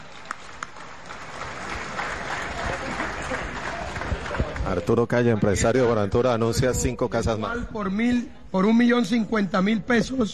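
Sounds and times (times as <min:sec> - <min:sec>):
applause: 0:00.0 - 0:05.1
speech: 0:04.7 - 0:10.3.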